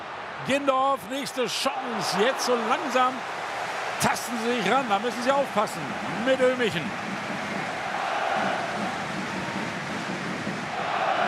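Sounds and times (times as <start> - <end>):
speech: 0.4 - 3.4, 4.0 - 7.1
football stadium crowd chanting and cheering: 1.7 - 11.2.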